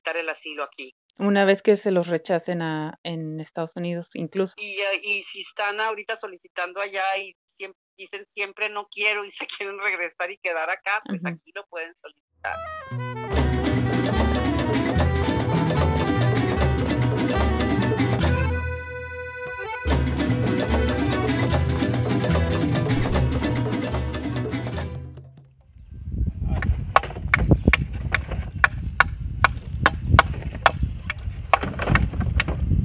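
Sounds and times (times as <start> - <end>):
speech: 0.1 - 13.0
music: 12.4 - 25.6
hammers striking wood: 26.6 - 32.6.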